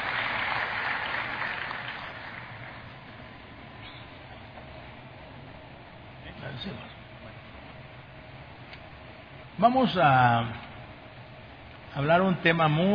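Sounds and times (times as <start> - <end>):
audience applause: 0.0 - 2.9
speech: 6.6 - 7.0, 9.6 - 10.6, 12.0 - 12.9.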